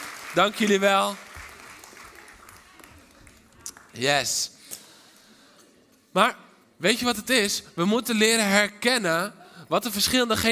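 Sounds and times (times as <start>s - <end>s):
audience applause: 0.0s - 4.0s
speech: 0.3s - 1.2s, 4.0s - 4.6s, 6.1s - 10.5s.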